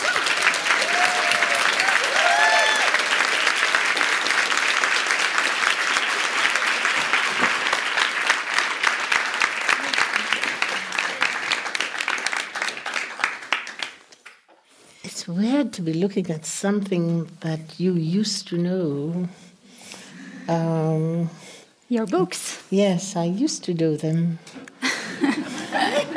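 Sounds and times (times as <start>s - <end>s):
audience applause welcoming two speakers at a literary talk: 0.0s - 14.1s
speech: 15.7s - 19.4s, 20.5s - 24.6s
laughter: 24.8s - 26.1s.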